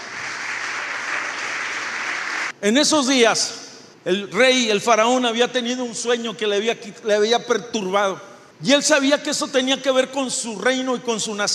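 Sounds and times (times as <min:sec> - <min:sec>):
audience applause: 0:00.0 - 0:02.5
speech: 0:02.6 - 0:11.5.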